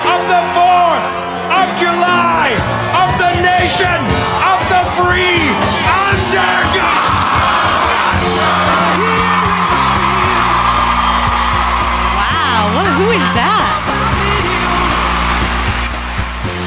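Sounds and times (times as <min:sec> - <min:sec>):
crowd noise: 0:00.0 - 0:16.6
speech: 0:03.7 - 0:04.4.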